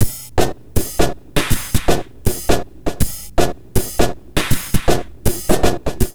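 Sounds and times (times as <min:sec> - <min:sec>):
crazy processed neuro drum loops at 80 bpm: 0:00.0 - 0:06.1.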